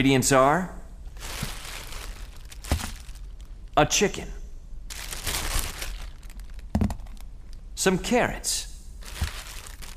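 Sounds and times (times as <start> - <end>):
speech: 0.0 - 1.5, 3.8 - 4.4, 7.8 - 8.7
bag being opened, crinkling: 1.1 - 3.6, 4.9 - 7.6, 9.0 - 9.9.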